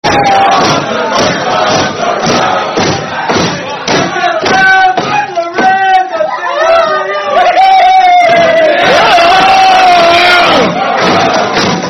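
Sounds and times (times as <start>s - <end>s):
British pub sing-along song: 0.0s - 11.8s.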